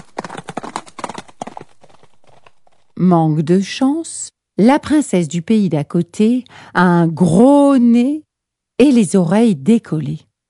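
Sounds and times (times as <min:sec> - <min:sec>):
horse hooves galloping: 0:00.0 - 0:03.0
speech: 0:03.0 - 0:10.3.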